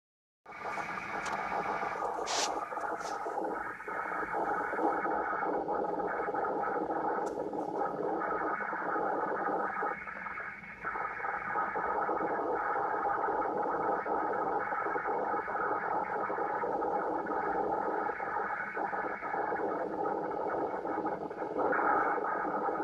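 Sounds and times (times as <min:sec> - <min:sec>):
noise: 0:00.4 - 0:22.8.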